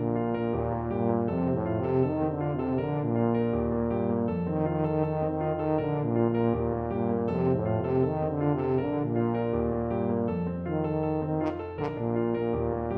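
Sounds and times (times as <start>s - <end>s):
tuba playing a Mexican folk song: 0.0s - 12.9s.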